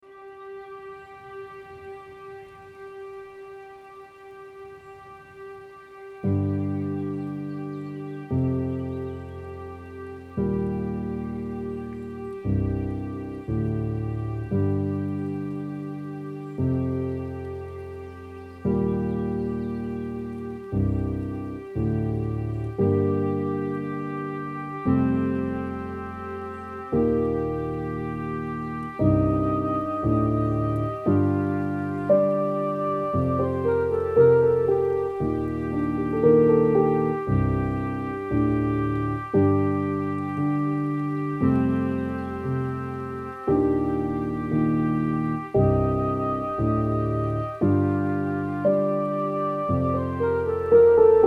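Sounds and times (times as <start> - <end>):
rain at night: 0.0 - 51.2.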